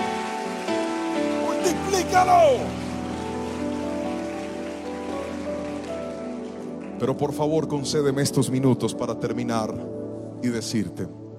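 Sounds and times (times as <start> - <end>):
audience applauding loudly: 0.0 - 7.4
speech: 1.7 - 2.8, 7.0 - 11.2.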